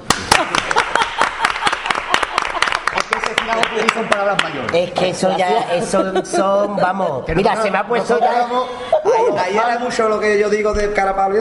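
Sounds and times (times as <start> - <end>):
audience applause: 0.0 - 4.8
laughter: 0.3 - 3.6, 5.0 - 9.8
speech: 4.3 - 11.3.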